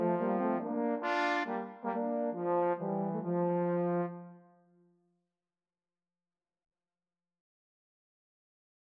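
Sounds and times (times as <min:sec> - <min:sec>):
rose trombone: 0:00.0 - 0:04.3.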